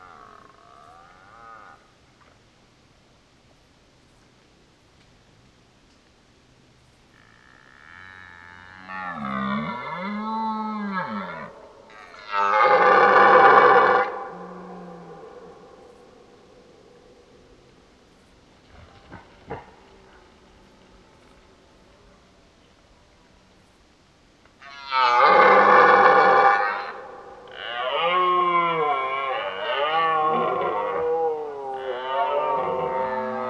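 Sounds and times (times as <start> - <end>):
red deer stag roaring: 7.2 - 16.8, 24.6 - 33.4.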